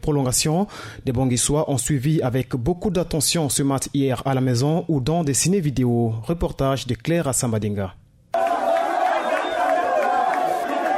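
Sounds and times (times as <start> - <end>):
speech: 0.0 - 8.0
crowd watching the Cameroon-Egypt football match: 8.4 - 10.9.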